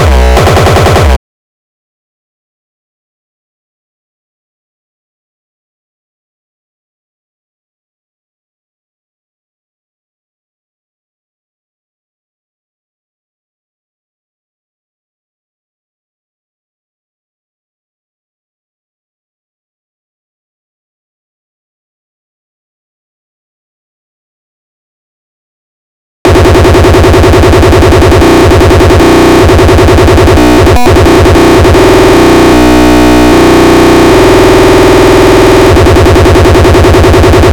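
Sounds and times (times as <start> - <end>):
drum breaks: 0.0 - 1.2, 26.3 - 37.5.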